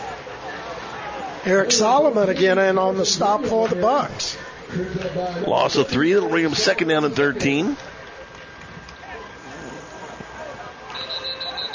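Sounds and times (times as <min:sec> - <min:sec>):
crowd murmur: 0:00.0 - 0:11.7
speech: 0:01.4 - 0:07.9
referee's whistle: 0:10.9 - 0:11.7.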